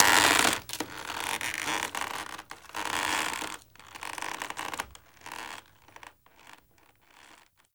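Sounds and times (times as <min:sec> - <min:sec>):
hanging rope creaking: 0:00.0 - 0:05.6.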